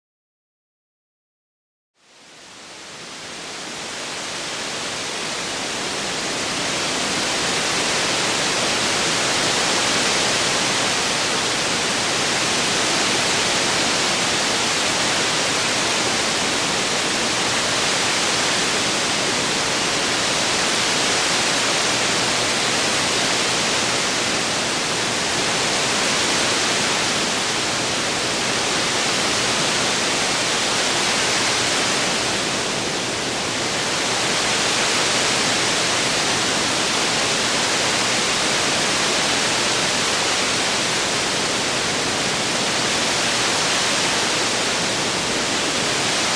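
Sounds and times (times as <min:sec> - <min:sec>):
rain: 0:02.0 - 0:46.3.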